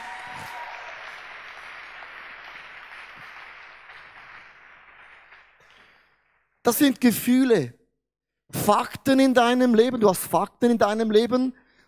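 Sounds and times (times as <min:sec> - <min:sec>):
audience applause: 0:00.0 - 0:06.3
speech: 0:06.6 - 0:07.8, 0:08.7 - 0:11.6.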